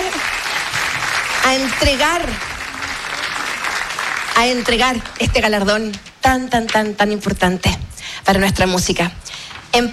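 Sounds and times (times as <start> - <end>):
audience applause: 0.0 - 5.3
speech: 1.5 - 2.5, 4.4 - 9.9.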